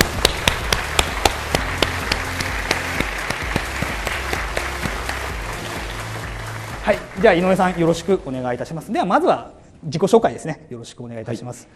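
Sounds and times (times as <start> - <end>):
audience applause: 0.0 - 8.5
speech: 6.9 - 11.7.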